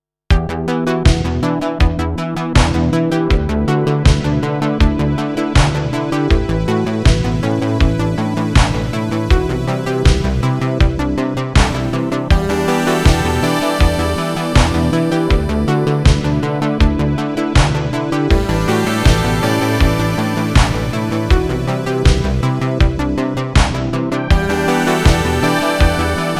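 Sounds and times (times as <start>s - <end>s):
Gyraf GXXIV test of 80s mix: 0.3s - 26.3s.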